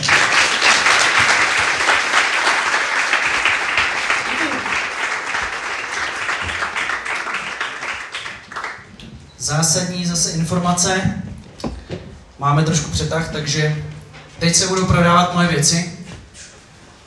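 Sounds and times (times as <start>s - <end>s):
audience applause: 0.0s - 9.0s
speech: 9.7s - 11.2s, 12.4s - 15.9s.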